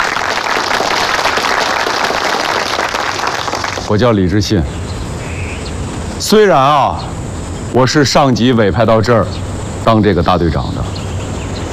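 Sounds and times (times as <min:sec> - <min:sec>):
applause from a gathering welcoming a new guerrilla brigade leader: 0:00.0 - 0:03.9
speech: 0:03.9 - 0:04.8, 0:06.2 - 0:07.1, 0:07.7 - 0:11.0.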